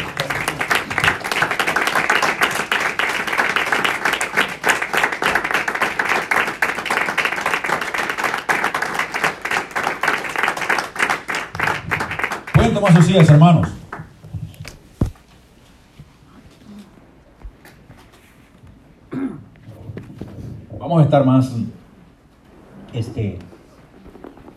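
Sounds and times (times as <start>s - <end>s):
audience applause: 0.0s - 14.1s
speech: 12.8s - 13.8s, 21.1s - 21.7s.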